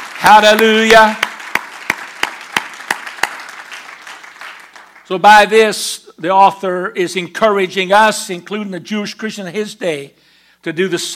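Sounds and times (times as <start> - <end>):
audience clapping hands in unison: 0.0 - 5.2
speech: 0.2 - 1.2, 5.1 - 11.1.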